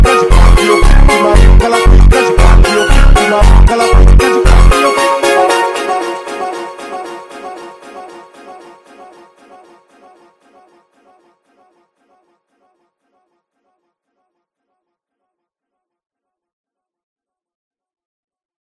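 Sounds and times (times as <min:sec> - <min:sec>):
slowed montagem music: 0:00.0 - 0:11.3.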